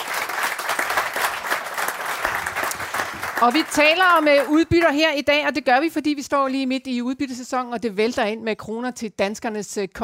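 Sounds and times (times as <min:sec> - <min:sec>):
audience applause for a three-person panel: 0:00.0 - 0:04.6
speech: 0:03.4 - 0:10.0.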